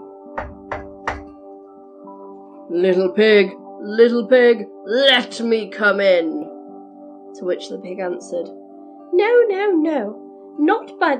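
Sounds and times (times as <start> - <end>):
knocking on a door: 0.4 - 1.3
speech: 2.7 - 6.4, 7.3 - 11.1.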